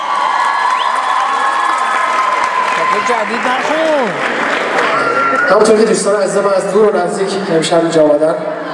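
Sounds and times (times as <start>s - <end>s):
audience clapping for a pianist at a live concert: 0.0s - 5.5s
crowd whooping at a live concert: 0.0s - 6.0s
speech: 3.0s - 8.6s.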